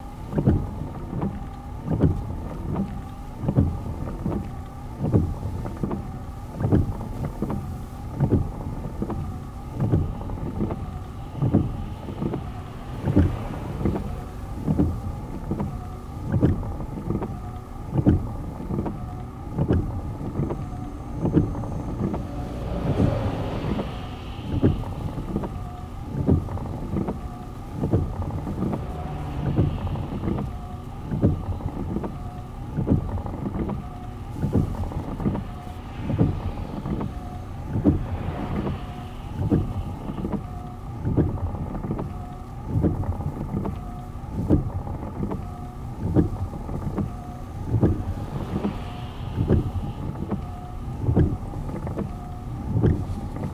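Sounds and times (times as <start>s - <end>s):
windshield wipers: 0.0s - 53.5s.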